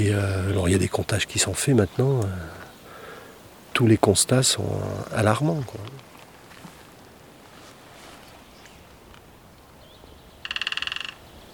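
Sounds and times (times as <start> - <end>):
speech: 0.0 - 2.6, 3.8 - 6.1
bird drumming on wood: 10.4 - 11.2.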